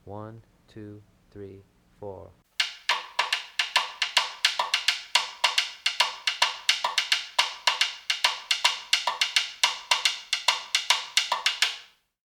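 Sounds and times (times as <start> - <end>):
basic cascara rhythm on drum shell: 2.6 - 12.0.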